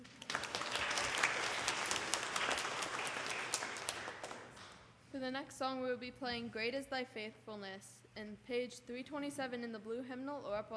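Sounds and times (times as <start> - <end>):
crowd applauding: 0.0 - 4.6
speech: 5.2 - 10.7.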